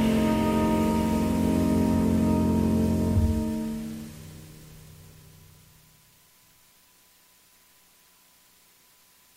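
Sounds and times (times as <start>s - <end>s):
jazz music: 0.0s - 4.8s.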